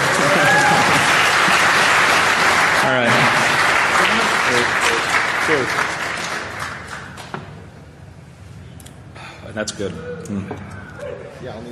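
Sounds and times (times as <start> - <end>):
audience applause: 0.0 - 7.3
speech: 9.6 - 11.6.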